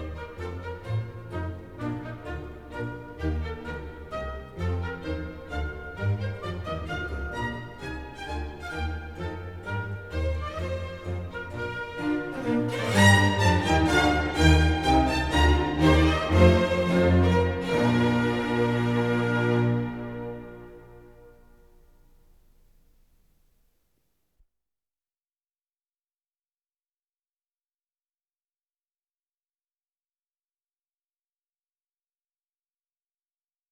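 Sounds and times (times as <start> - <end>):
organ concerto: 0.0 - 21.6.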